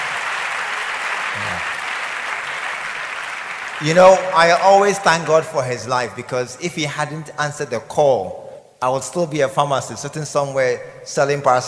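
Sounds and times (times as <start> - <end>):
audience clapping: 0.0 - 5.9
speech: 3.8 - 11.6.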